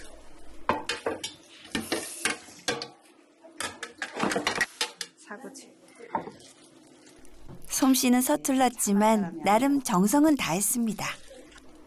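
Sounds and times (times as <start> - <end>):
seasoned acorn jelly mixed in a bowl: 0.8 - 7.7
speech: 5.4 - 6.3, 7.8 - 11.2.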